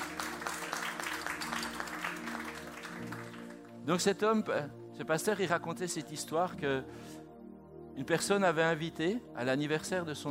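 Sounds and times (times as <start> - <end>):
audience applause: 0.0 - 3.7
speech: 3.9 - 7.2, 8.0 - 10.2.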